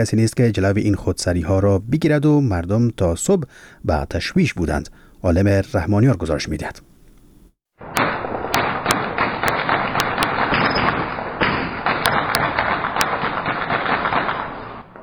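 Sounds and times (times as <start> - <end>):
speech: 0.0 - 6.9
light and heavy weapons fire at night in Sheberghan, Afghanistan: 7.8 - 15.0
sharp loud gunshot cracks: 7.8 - 15.0.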